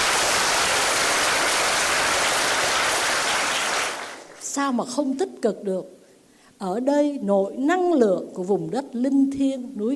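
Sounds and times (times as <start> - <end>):
audience applause: 0.0 - 4.4
speech: 4.6 - 6.0, 6.6 - 9.9.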